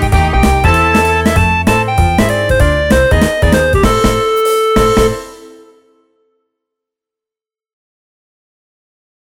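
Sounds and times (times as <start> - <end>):
swing melody: 0.0 - 6.1.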